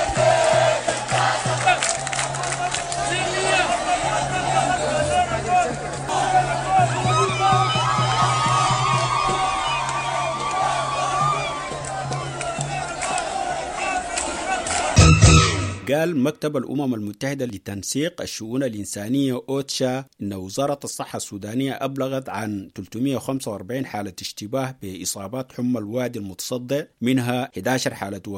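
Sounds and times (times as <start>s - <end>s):
protesters chanting and shouting outside the Council of Ministers: 0.0s - 15.9s
speech: 15.9s - 28.3s.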